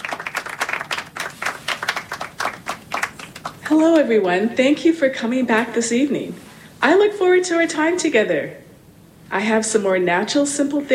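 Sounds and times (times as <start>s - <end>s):
audience applause welcoming a speaker at an evening health program talk: 0.0s - 3.6s
speech: 3.7s - 8.6s, 9.3s - 10.9s.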